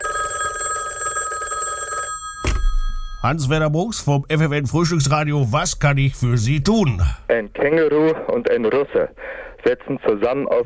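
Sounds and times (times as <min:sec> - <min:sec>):
telephone bell ringing: 0:00.0 - 0:03.5
telephone receiver picked up with a clunk: 0:02.4 - 0:03.2
speech: 0:03.2 - 0:10.6.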